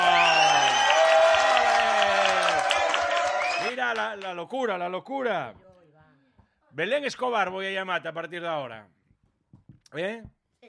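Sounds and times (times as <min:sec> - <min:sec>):
applause sound effect: 0:00.0 - 0:04.4
speech: 0:03.9 - 0:05.6, 0:06.7 - 0:09.0, 0:09.9 - 0:10.4.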